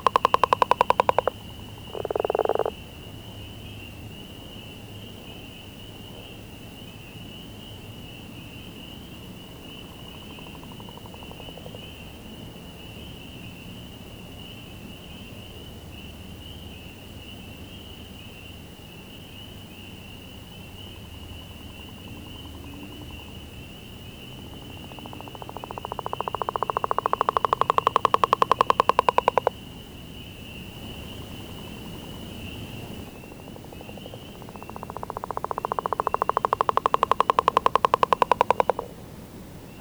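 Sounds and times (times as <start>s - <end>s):
Northern leopard frog calling: 0.0s - 6.3s, 8.6s - 12.2s, 19.2s - 39.7s.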